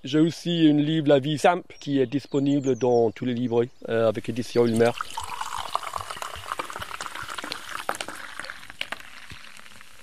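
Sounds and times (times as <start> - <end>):
speech: 0.0 - 5.2
freshly poured drink foaming and fizzing: 4.2 - 10.0.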